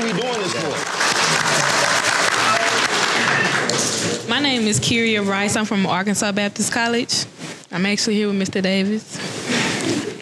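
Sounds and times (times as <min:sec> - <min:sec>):
audience applause: 0:00.0 - 0:04.3
speech: 0:04.6 - 0:09.2.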